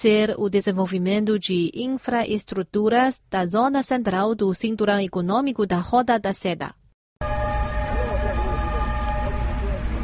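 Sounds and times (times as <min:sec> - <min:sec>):
speech: 0:00.0 - 0:07.3
fully loaded China-Europe freight train leaving the distribution centre in Urumqi: 0:07.2 - 0:10.0
sustained tonal horn-like drone: 0:07.2 - 0:10.0.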